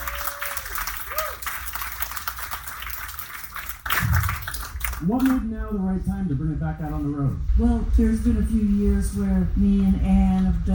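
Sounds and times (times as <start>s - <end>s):
applause: 0.0s - 5.4s
speech: 5.0s - 10.7s.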